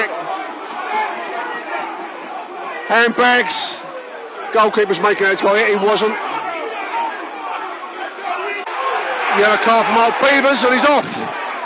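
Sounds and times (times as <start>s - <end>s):
football crowd roaring and jeering: 0.0s - 11.6s
speech: 2.9s - 3.8s, 4.5s - 6.3s, 9.4s - 11.4s.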